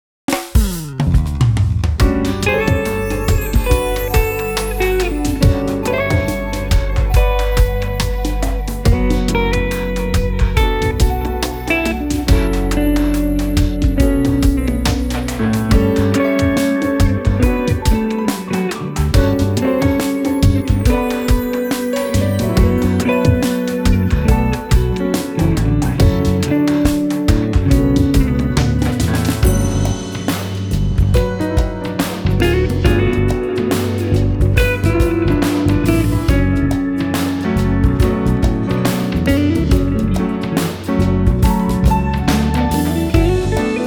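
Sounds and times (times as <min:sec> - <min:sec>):
smooth jazz: 0:00.6 - 0:43.8.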